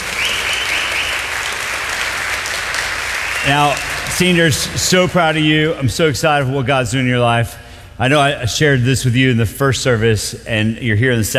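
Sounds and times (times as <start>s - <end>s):
audience cheering and applause: 0.0s - 5.5s
speech: 3.4s - 11.3s.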